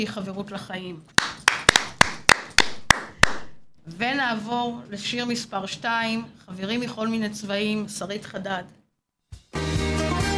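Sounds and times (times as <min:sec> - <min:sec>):
speech: 0:00.0 - 0:01.3, 0:03.9 - 0:08.8
few people clapping: 0:01.2 - 0:03.7.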